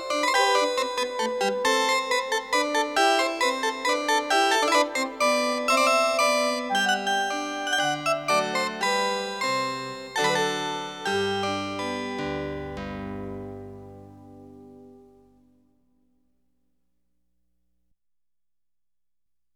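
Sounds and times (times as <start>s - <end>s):
minuet: 0.0s - 15.3s.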